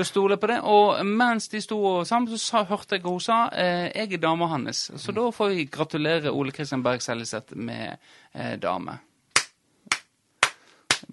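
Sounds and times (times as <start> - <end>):
speech: 0.0 - 9.1
hand claps: 9.4 - 11.1.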